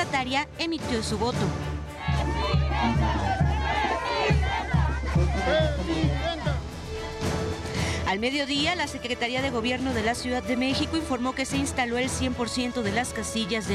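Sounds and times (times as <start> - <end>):
speech: 0.1 - 1.7, 2.7 - 3.4, 8.1 - 13.7
crowd cheering and shouting at polling station: 1.9 - 7.6.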